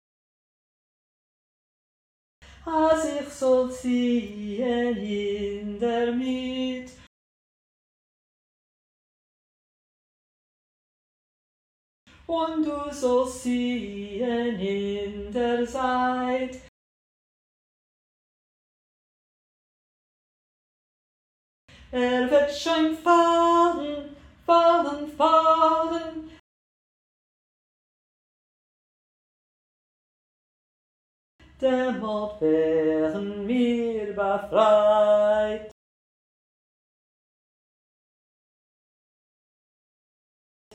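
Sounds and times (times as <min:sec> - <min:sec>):
tenor voice singing a refrain: 0:02.6 - 0:07.0, 0:12.3 - 0:16.7, 0:21.9 - 0:26.4, 0:31.6 - 0:35.7.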